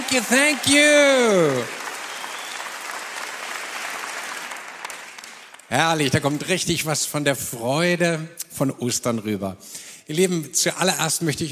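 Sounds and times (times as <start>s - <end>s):
audience applause: 0.0s - 6.6s
speech: 0.1s - 1.8s, 5.7s - 11.5s.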